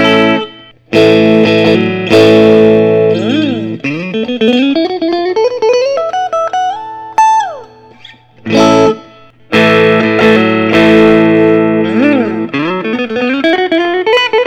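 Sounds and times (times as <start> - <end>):
quilt top two-tone sunburst electric guitar playing: 0.0 - 14.4.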